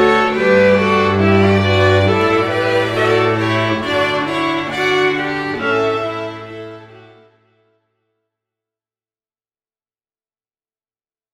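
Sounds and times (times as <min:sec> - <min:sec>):
string quartet: 0:00.0 - 0:07.5.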